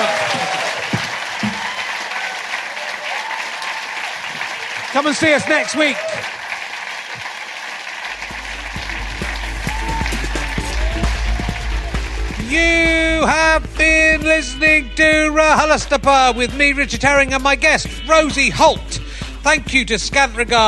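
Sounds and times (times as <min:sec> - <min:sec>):
audience applause: 0:00.0 - 0:14.0
speech: 0:05.0 - 0:06.3, 0:12.5 - 0:20.6.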